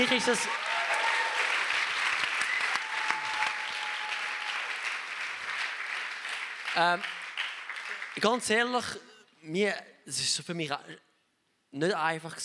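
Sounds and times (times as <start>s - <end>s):
speech: 0.0s - 0.8s, 6.8s - 7.2s, 8.2s - 11.0s, 11.7s - 12.4s
audience applause: 0.0s - 8.4s.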